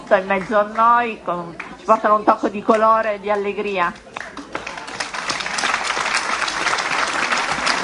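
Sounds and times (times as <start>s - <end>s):
speech: 0.1s - 4.1s
audience applause: 4.1s - 7.8s.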